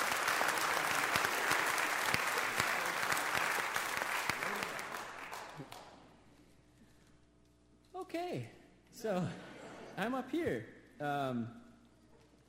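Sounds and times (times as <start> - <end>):
audience applauding to welcome a speaker at a Christian service: 0.0 - 6.0
speech: 8.1 - 11.6.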